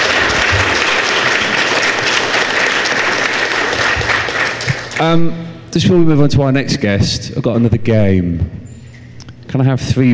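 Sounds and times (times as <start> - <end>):
audience applause: 0.0 - 5.2
speech: 5.0 - 8.6, 9.5 - 10.1.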